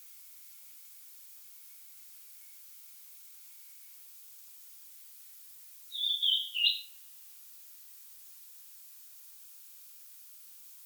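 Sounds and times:
European robin Erithacus rubecula singing: 5.9 - 6.9.

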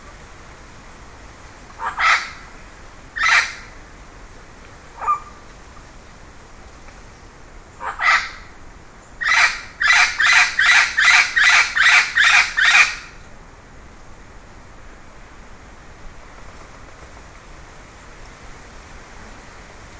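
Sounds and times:
bird uttering raspy calls: 1.8 - 2.4, 3.2 - 3.7, 5.0 - 5.4, 7.8 - 8.5, 9.2 - 13.2.

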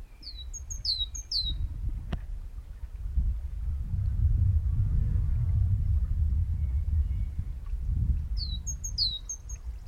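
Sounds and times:
great tit calling: 0.1 - 1.6, 8.4 - 9.6
heavy low rumbling noise: 3.5 - 8.1.

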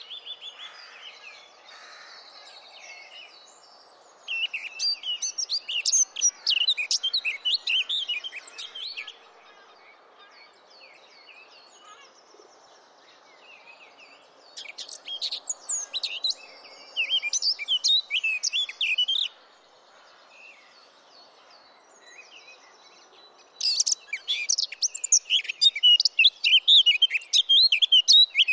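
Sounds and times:
Eurasian blackcap singing: 4.3 - 9.2, 14.6 - 16.4, 17.0 - 19.3, 23.6 - 28.5.

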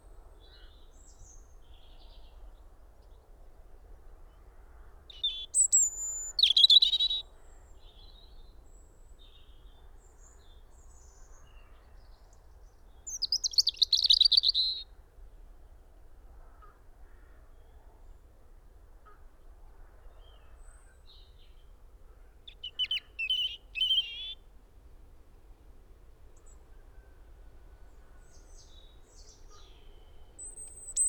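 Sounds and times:
European robin singing: 5.1 - 7.2, 13.1 - 14.9, 22.5 - 24.4, 28.2 - 31.0.

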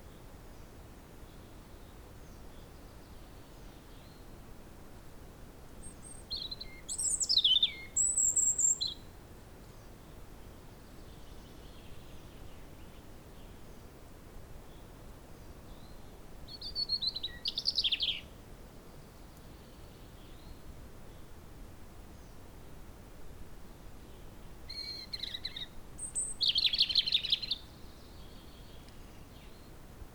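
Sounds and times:
hiss: 0.0 - 30.1
European robin song phrase: 6.4 - 9.0, 24.7 - 27.6.

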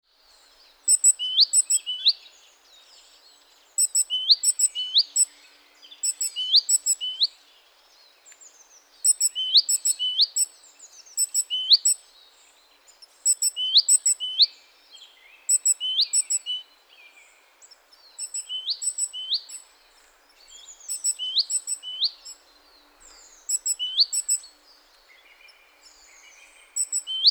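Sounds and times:
great tit singing: 3.7 - 7.4, 8.4 - 12.0, 12.9 - 16.7, 17.6 - 19.7, 20.3 - 27.2.

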